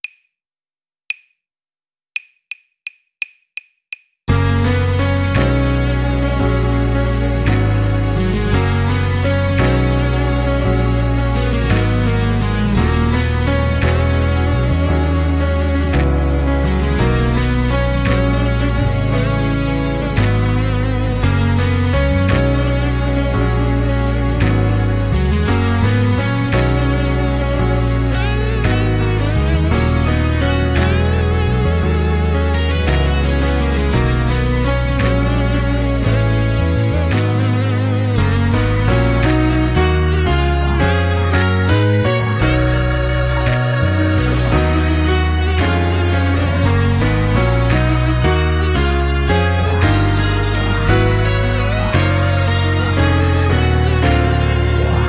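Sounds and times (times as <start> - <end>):
music without drums: 2.2 - 55.0.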